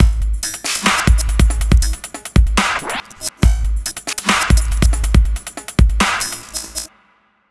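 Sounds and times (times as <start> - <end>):
dubstep drum loop: 0.0 - 6.9.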